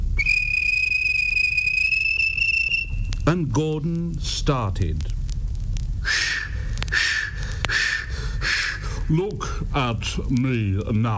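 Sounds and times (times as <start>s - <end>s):
guard blowing a whistle: 0.0s - 3.2s, 6.0s - 8.8s
speech: 3.3s - 5.2s, 9.1s - 11.1s.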